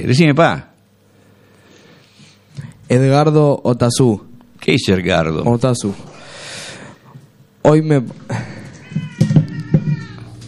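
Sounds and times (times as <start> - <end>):
speech: 0.0 - 0.7, 2.9 - 6.2, 7.6 - 9.1
pet cat meowing in a radio studio: 8.6 - 10.4.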